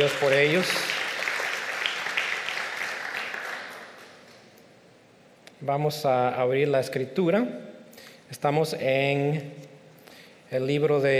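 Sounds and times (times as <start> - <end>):
speech: 0.0 - 1.0, 5.6 - 7.7, 8.3 - 9.7, 10.5 - 11.1
applause: 0.0 - 4.2.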